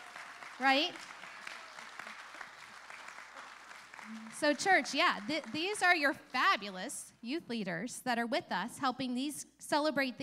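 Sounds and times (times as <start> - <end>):
crowd clapping: 0.0 - 6.6
speech: 0.6 - 1.2, 4.1 - 10.2.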